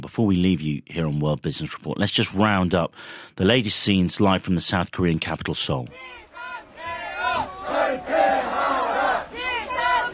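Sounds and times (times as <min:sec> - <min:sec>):
speech: 0:00.0 - 0:06.2
crowds outside the National Assembly building: 0:05.9 - 0:10.1.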